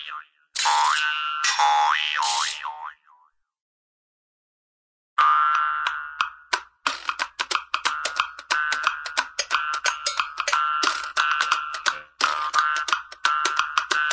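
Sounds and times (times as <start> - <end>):
cartoon machine: 0.6 - 2.7, 5.2 - 14.1.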